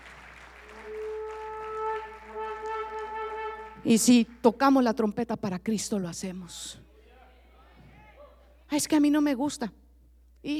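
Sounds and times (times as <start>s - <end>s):
audience applause: 0.0s - 4.0s
speech: 3.8s - 6.9s, 8.7s - 9.8s.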